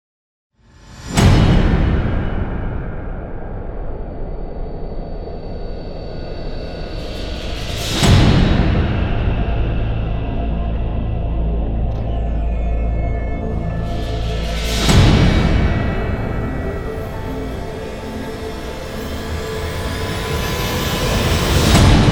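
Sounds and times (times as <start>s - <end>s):
intense trailer music: 0.8s - 22.1s.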